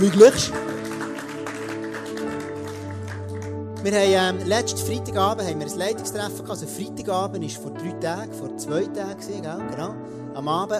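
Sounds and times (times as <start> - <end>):
speech: 0.0 - 0.7, 3.8 - 10.7
audience applause: 0.0 - 3.6.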